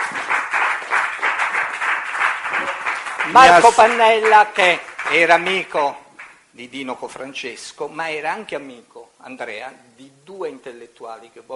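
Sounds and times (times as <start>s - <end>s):
audience applause: 0.0s - 6.4s
speech: 3.3s - 6.0s, 6.6s - 11.5s.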